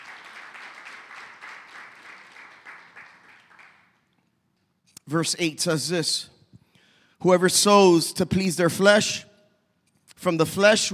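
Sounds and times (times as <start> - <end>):
audience applause: 0.0 - 3.9
speech: 5.1 - 6.4, 7.2 - 9.3, 10.2 - 10.9.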